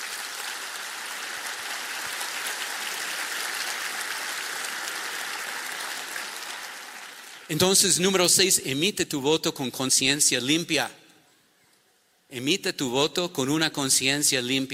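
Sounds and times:
audience applause: 0.0 - 7.5
speech: 7.5 - 11.0, 12.3 - 14.7.

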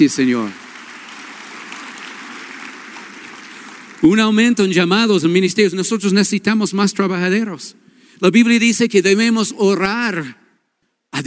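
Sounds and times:
speech: 0.0 - 0.7, 4.0 - 10.4
audience applause: 0.0 - 4.8.

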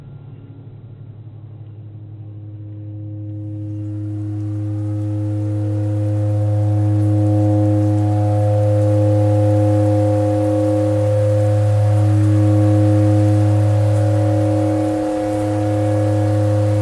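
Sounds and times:
tornado siren: 3.3 - 16.7
clarinet playing pentatonic: 3.5 - 16.7.

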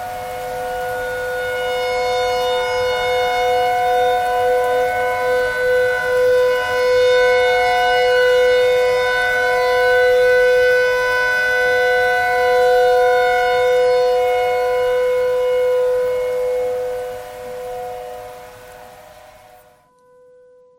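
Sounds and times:
clarinet notes: 0.0 - 20.0
noise: 0.0 - 20.7
tornado siren: 0.0 - 20.7.

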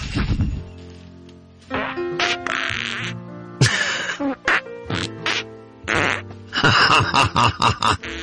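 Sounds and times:
fart noises played as a musical tune on a novelty Christmas album: 1.7 - 3.2, 4.1 - 6.3, 8.0 - 8.2
laughter: 6.6 - 8.0.

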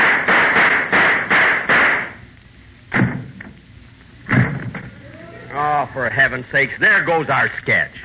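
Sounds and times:
knocks: 0.0 - 2.1, 2.9 - 3.6
gunshot sound effects in a radio comedy sketch: 0.0 - 2.2, 2.9 - 3.4, 4.3 - 4.9
speech: 6.0 - 8.0.

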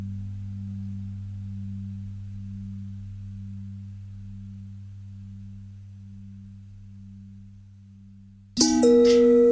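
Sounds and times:
long bell ringing: 8.6 - 9.5.

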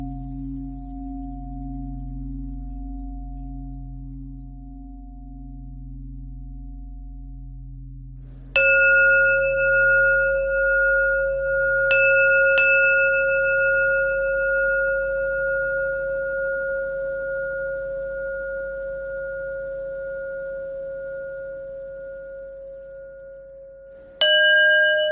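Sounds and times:
pentatonic bell melody: 8.6 - 25.1.

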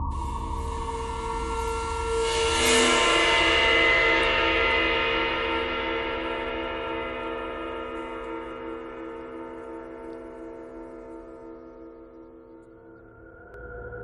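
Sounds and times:
bowed cymbal: 0.1 - 10.2.

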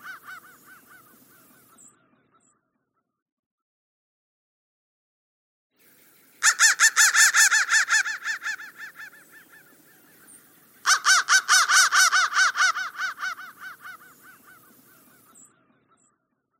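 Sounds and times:
crow cawing: 0.0 - 1.8, 6.4 - 15.4.

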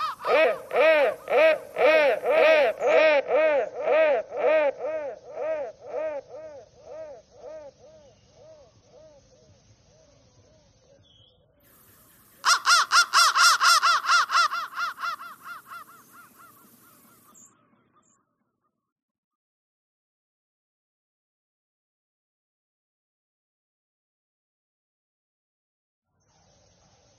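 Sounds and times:
crow thread noise: 0.0 - 10.5, 11.8 - 17.5.

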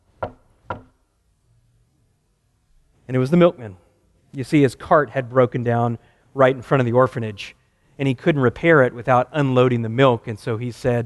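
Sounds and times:
knocking on a door: 0.2 - 1.0
speech: 3.1 - 11.0.

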